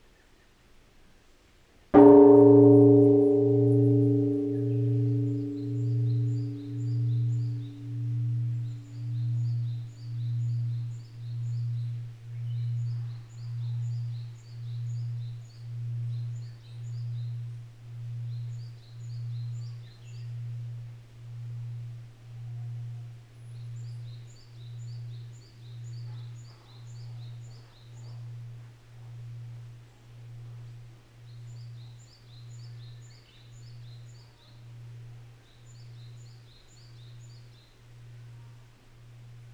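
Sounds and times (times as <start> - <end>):
bell: 2.0 - 17.3.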